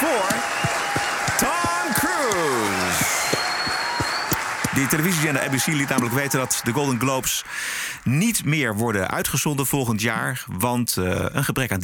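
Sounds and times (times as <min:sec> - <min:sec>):
crowd applauding: 0:00.0 - 0:08.1
sliding falling whistle-like tone: 0:03.0 - 0:04.4
speech: 0:04.8 - 0:11.8.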